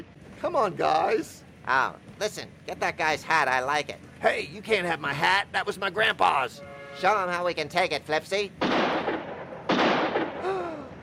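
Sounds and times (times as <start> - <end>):
speech: 0.4 - 8.7
gunshot: 8.6 - 10.6.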